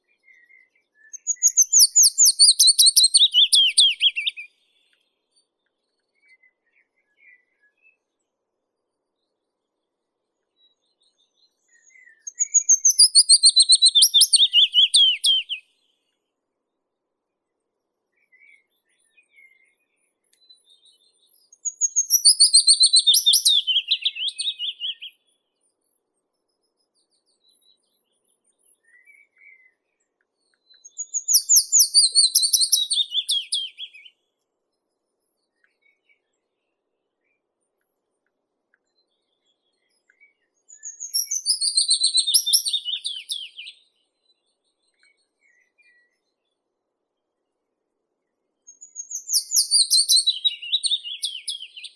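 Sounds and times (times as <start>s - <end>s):
Phylloscopus trochilus willow warbler singing: 0.3s - 4.6s, 11.1s - 15.6s, 21.5s - 25.2s, 30.7s - 34.1s, 40.6s - 43.8s, 48.7s - 51.9s.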